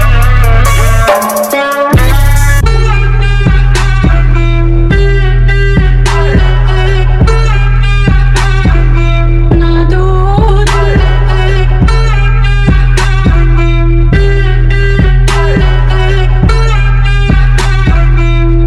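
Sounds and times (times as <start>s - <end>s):
slow bass remix music: 0.0s - 18.6s.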